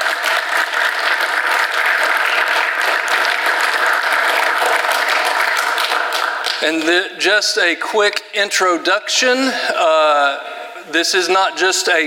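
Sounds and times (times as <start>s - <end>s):
audience round of applause for volunteers: 0.0s - 6.9s
speech: 6.6s - 12.0s.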